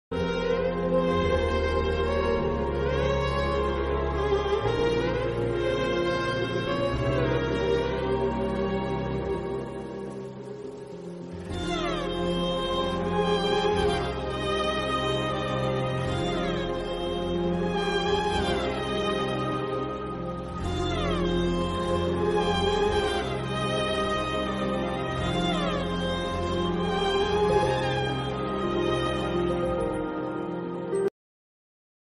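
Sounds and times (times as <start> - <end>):
baby emotional background music ringtone: 0.1 - 31.1.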